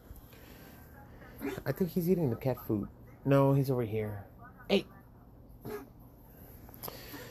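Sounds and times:
low steady hum: 0:00.0 - 0:07.3
speech: 0:01.4 - 0:05.0
Chihuahua coughing: 0:05.6 - 0:06.0.

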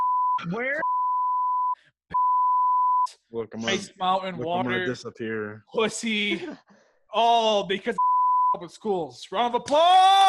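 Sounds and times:
censorship bleep tone: 0:00.0 - 0:03.8, 0:08.0 - 0:08.6
speech: 0:00.4 - 0:01.0, 0:03.1 - 0:08.0, 0:08.6 - 0:10.2.

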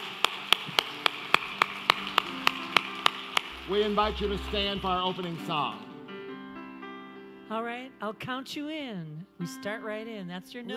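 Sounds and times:
audience clapping in unison: 0:00.0 - 0:06.0
speech: 0:03.7 - 0:05.9, 0:07.5 - 0:10.7.

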